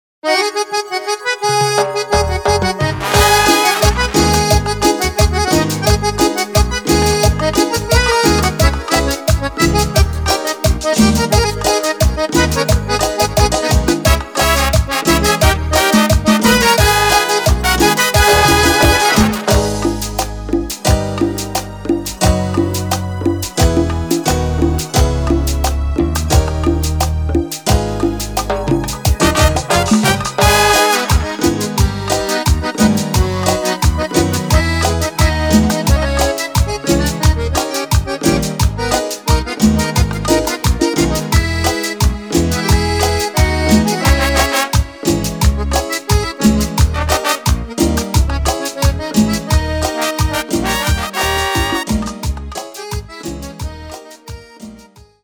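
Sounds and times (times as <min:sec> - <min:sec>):
cumbia version: 0:00.2 - 0:55.2.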